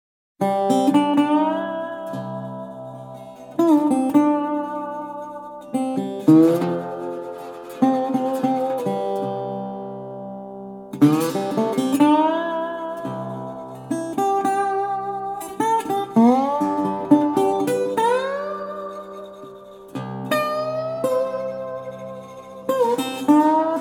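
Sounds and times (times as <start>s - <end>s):
slide guitar: 0.4s - 23.7s.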